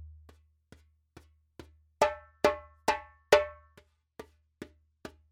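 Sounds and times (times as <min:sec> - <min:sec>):
djembe drumming: 0:02.0 - 0:03.7.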